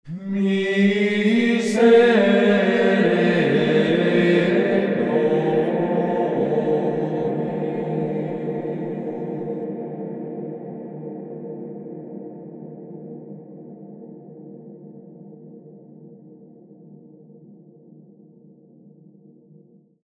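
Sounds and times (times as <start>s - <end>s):
monks' voices with reverb: 0.1s - 11.2s.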